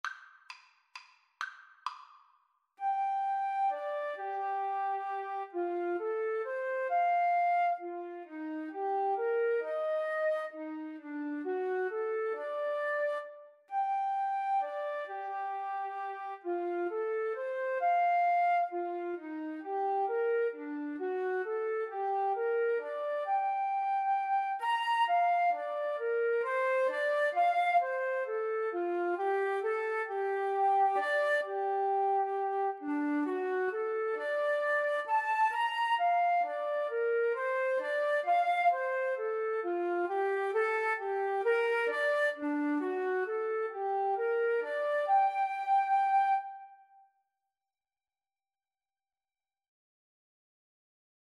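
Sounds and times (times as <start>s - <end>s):
flute duet: 2.8s - 47.1s.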